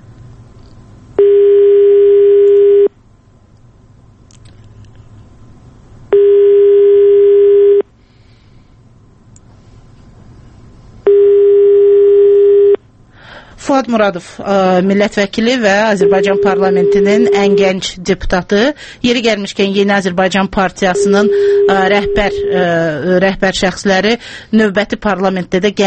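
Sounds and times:
telephone ringback tone while a call waits to connect: 1.2s - 2.9s, 6.1s - 7.8s, 11.1s - 12.8s, 15.9s - 17.8s, 21.0s - 22.7s
speech: 13.8s - 25.8s.

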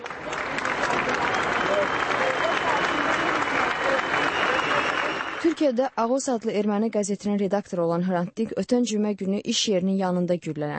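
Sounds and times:
tens of thousands of mourners clapping at a journalist's funeral procession: 0.0s - 5.9s
speech: 5.6s - 10.7s.

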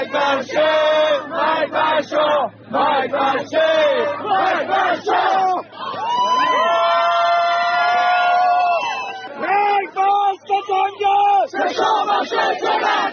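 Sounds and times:
crowd of MEK supporters chanting slogans at a rally: 0.0s - 6.0s, 9.4s - 13.1s
long sustained collective shout of MEK supporters: 0.0s - 13.1s.

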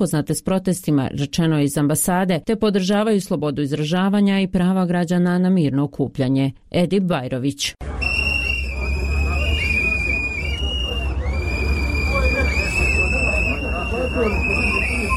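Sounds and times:
speech: 0.0s - 8.0s
low crowd murmur: 7.8s - 15.1s
protest crowd in Bosnia and Herzegovina blowing whistles: 7.9s - 15.1s.

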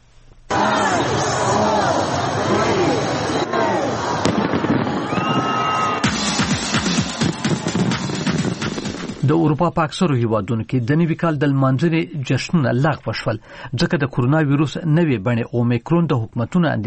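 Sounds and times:
crowd hubbub at Sydney's New Year celebration: 0.5s - 9.2s
fireworks at Sydney's New Year celebration: 4.2s - 9.3s
speech: 9.3s - 16.8s.

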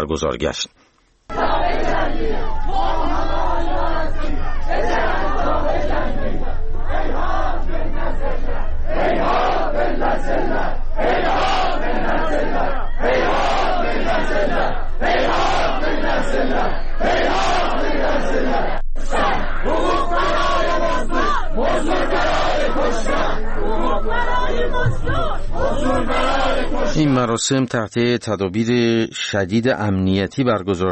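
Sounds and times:
speech: 0.0s - 7.3s, 8.0s - 20.8s, 21.8s - 30.9s
crowd of mourners chanting at a funeral: 1.3s - 27.3s.

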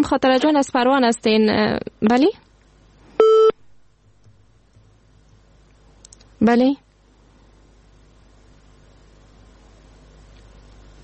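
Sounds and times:
speech: 0.0s - 2.4s, 6.4s - 6.8s
telephone tone of a dropped call: 3.2s - 3.6s.

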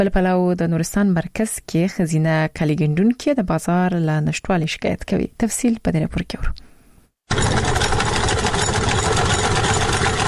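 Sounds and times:
speech: 0.0s - 6.7s
hand-turned sewing machine stitching clothes in Nuristan: 7.3s - 10.2s.

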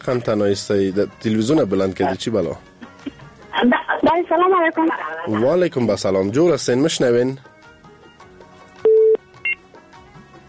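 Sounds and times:
speech: 0.0s - 2.8s, 3.6s - 7.5s
telephone keypad tones as a call connects on a radio call-in show: 8.9s - 9.2s.

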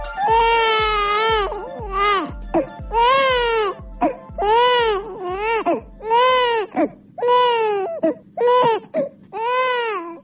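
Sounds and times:
infant crying loudly in wailing bursts: 0.1s - 10.2s.

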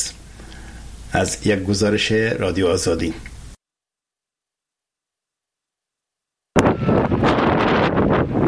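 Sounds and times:
speech: 1.2s - 3.3s
strong wind battering tents in Herat: 6.6s - 8.4s.

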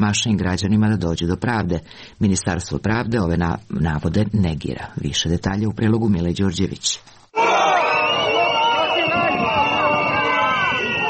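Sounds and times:
speech: 0.0s - 7.7s
large protesting crowd of lawyers marching: 7.4s - 11.0s
people shouting: 7.4s - 11.0s.

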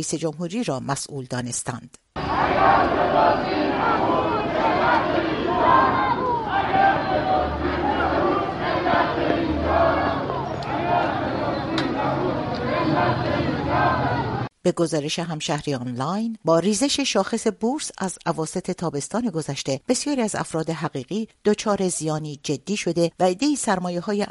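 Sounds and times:
speech: 0.0s - 7.7s, 13.0s - 24.2s
protesting crowd shouting: 2.2s - 14.5s.

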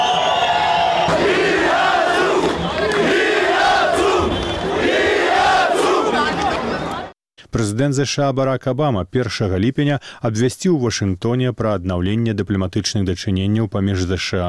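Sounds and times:
protesters chanting a slogan in unison: 1.0s - 7.1s
speech: 7.6s - 14.4s.

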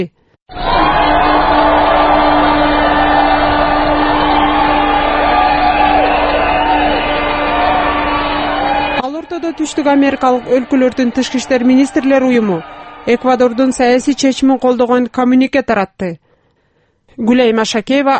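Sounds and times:
speech: 0.0s - 1.3s, 9.6s - 16.2s, 17.2s - 18.1s
crowd of supporters shouting outside the Ecuadorian embassy: 0.5s - 14.7s.

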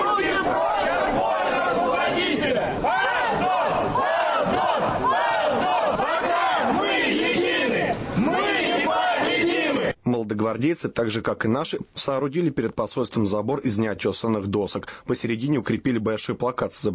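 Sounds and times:
protesters shouting: 0.0s - 9.9s
speech: 10.4s - 16.9s.

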